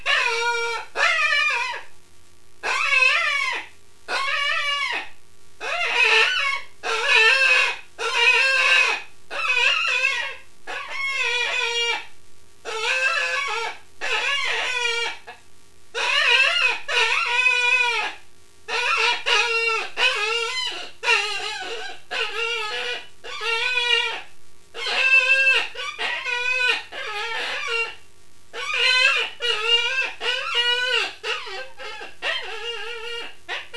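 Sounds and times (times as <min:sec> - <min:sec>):
rabbit squealing: 0:00.0 - 0:01.9, 0:02.6 - 0:15.4, 0:16.0 - 0:33.7.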